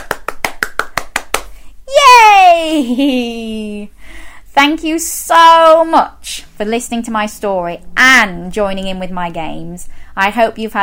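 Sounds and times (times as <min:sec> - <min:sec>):
hands clapping: 0:00.0 - 0:01.6
speech: 0:02.6 - 0:10.8.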